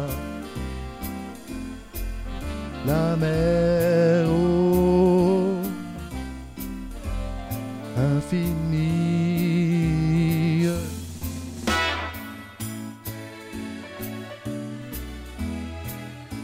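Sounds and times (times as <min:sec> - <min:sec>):
alto voice: 0:00.0 - 0:13.1.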